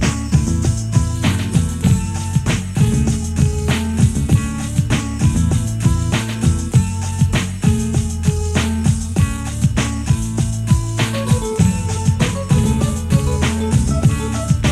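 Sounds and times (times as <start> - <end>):
guitar beats: 0.0 - 14.7.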